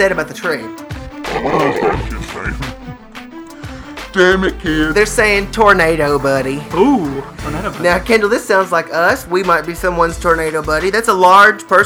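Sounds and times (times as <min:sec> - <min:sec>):
speech: 0:00.0 - 0:03.0, 0:04.2 - 0:11.8
burp: 0:01.2 - 0:03.0
laughter: 0:01.2 - 0:03.0, 0:04.2 - 0:10.0.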